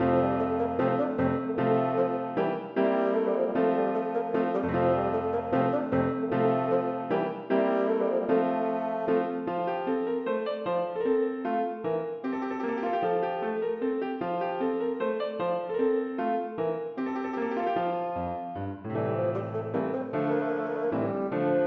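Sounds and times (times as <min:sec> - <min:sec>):
minuet for bassoon and piano: 0:00.0 - 0:21.6.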